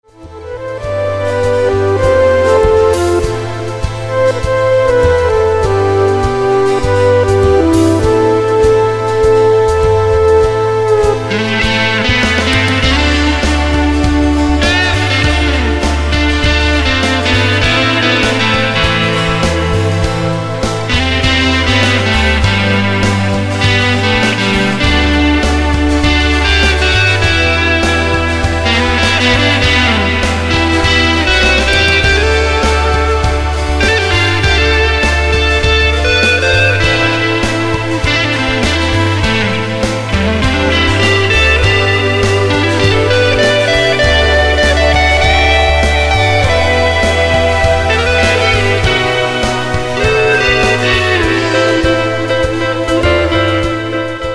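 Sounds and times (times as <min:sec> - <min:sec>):
samba music: 0:00.0 - 0:54.3.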